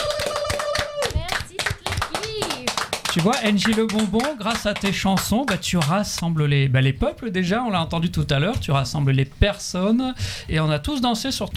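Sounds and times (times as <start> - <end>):
voices cheering and calling out: 0.0 - 5.0
crowd clapping: 0.0 - 6.4
speech: 3.1 - 11.5.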